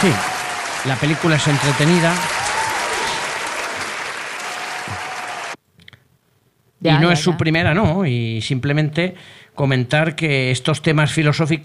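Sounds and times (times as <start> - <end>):
speech: 0.0 - 2.4, 6.8 - 11.6
applause: 0.0 - 5.6.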